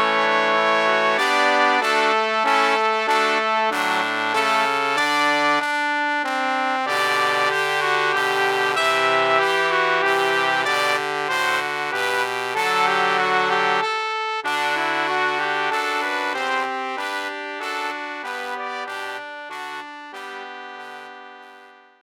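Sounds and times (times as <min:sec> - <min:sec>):
solo trombone: 0:00.0 - 0:21.8.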